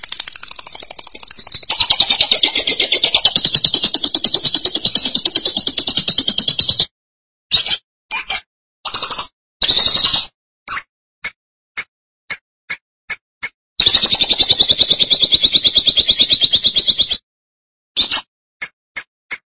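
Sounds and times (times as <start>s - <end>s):
lovebird trill and chirps: 0.0s - 6.9s, 7.6s - 10.9s, 13.8s - 17.2s.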